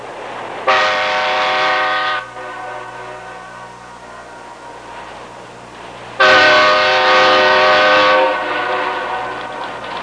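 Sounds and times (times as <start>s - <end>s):
train whistle: 0.7s - 4.9s, 6.2s - 9.8s.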